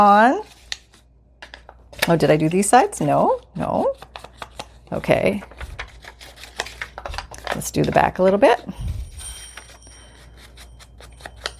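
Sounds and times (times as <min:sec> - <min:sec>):
speech: 0:00.0 - 0:00.5, 0:02.1 - 0:04.3, 0:04.9 - 0:05.7, 0:07.6 - 0:08.9
parrot's cage bell jingling: 0:08.8 - 0:11.5.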